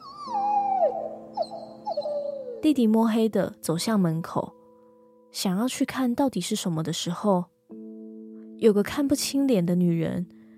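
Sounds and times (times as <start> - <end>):
dog whimpering: 0.0 - 2.7
speech: 2.0 - 4.6, 5.4 - 7.5, 8.6 - 10.4.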